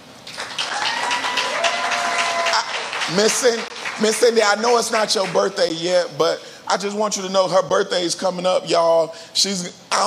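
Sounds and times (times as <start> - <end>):
audience applause: 0.3 - 5.4
speech: 3.1 - 10.0.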